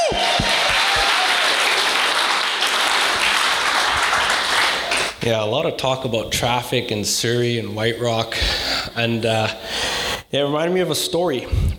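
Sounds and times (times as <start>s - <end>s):
crowd applause: 0.0s - 5.2s
speech: 5.2s - 11.7s.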